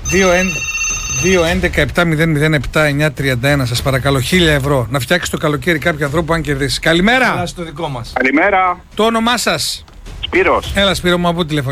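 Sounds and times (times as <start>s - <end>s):
telephone ringing during a live radio call-in: 0.0s - 1.9s
speech: 0.1s - 11.7s.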